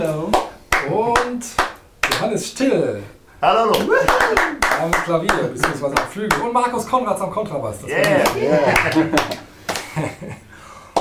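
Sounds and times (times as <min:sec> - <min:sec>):
speech: 0:00.0 - 0:09.4, 0:10.0 - 0:10.5
musicians applauding themselves: 0:03.7 - 0:06.5, 0:07.9 - 0:10.0
laughter: 0:03.8 - 0:04.6, 0:07.9 - 0:10.5.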